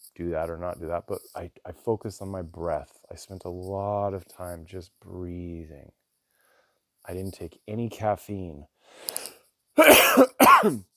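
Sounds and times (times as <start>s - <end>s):
speech: 0.2s - 6.0s, 7.0s - 10.9s
harsh coughs from a tickle in the throat: 9.8s - 10.8s.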